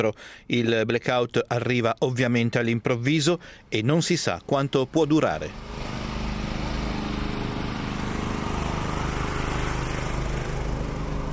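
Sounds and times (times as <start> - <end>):
speech: 0.0 - 5.8
power generators humming: 4.4 - 11.3.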